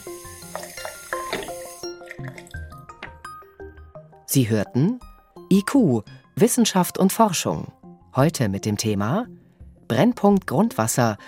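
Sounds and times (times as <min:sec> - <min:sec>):
water running from a tap: 0:00.0 - 0:02.9
speech: 0:04.3 - 0:11.2.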